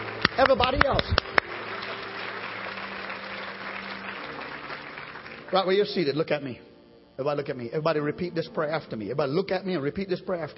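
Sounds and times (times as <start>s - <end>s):
audience clapping hands: 0.0s - 6.1s
speech: 0.4s - 1.4s, 5.5s - 10.5s.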